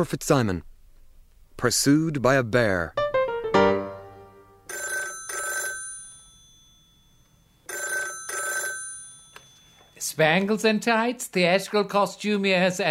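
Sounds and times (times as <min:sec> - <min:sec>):
speech: 0:00.0 - 0:00.7, 0:01.6 - 0:03.0, 0:10.2 - 0:12.9
telephone ringing: 0:04.7 - 0:10.1.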